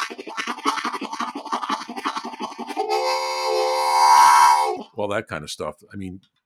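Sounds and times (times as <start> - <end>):
harmonica imitating a train: 0.0 - 4.8
speech: 5.1 - 6.4.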